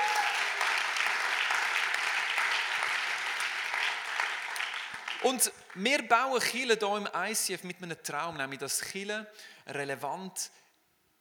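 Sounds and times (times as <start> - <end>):
audience clapping: 0.0 - 6.3
speech: 5.2 - 10.6.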